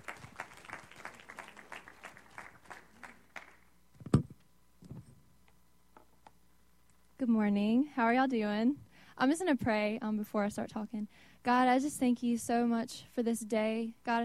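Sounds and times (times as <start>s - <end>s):
audience applause for speaker: 0.0s - 3.7s
speech: 7.2s - 14.2s.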